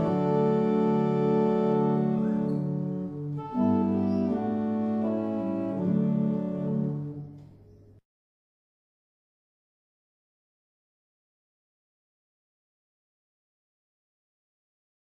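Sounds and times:
barrel organs playing a hymn: 0.0s - 7.6s.

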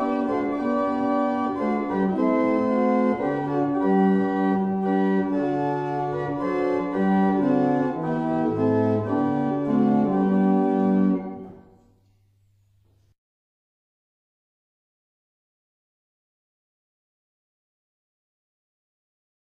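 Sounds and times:
barrel organ: 0.0s - 11.8s.

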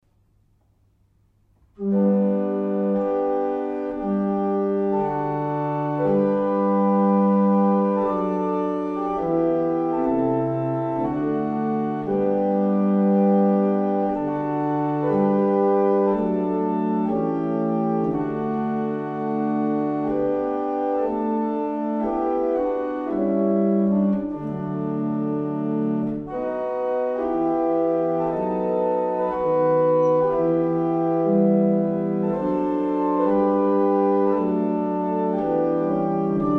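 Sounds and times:
barrel organs: 1.6s - 36.5s.

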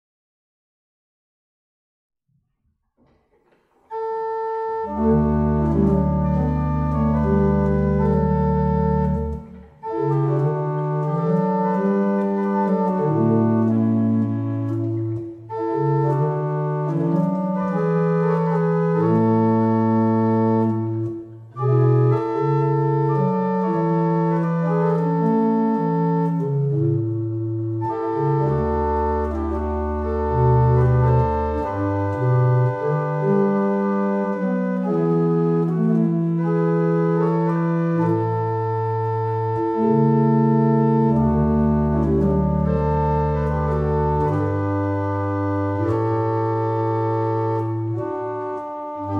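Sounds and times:
barrel organs: 3.9s - 49.1s.

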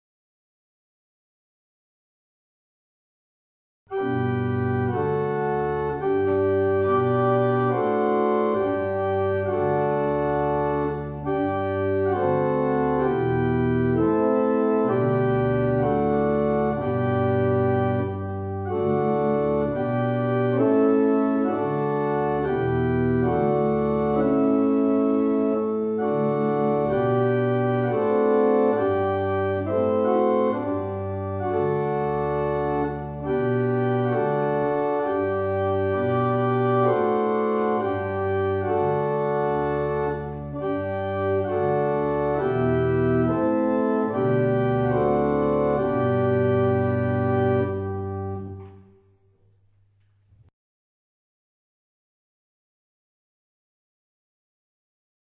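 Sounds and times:
barrel organs: 3.9s - 49.0s.

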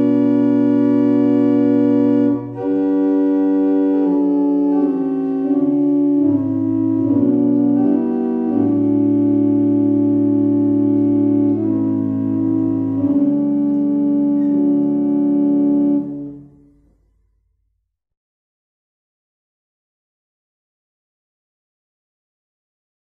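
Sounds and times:
barrel organs: 0.0s - 16.6s.

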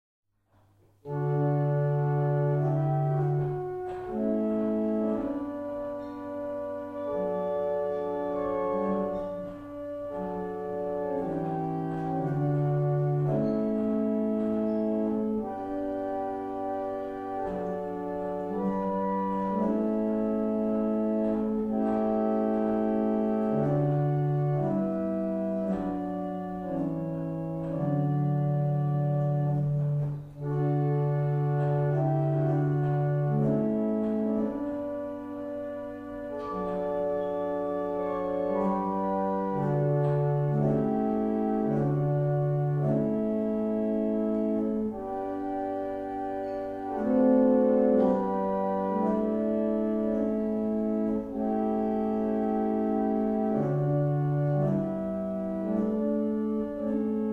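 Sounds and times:
barrel organ playing a double chant: 1.0s - 57.3s.

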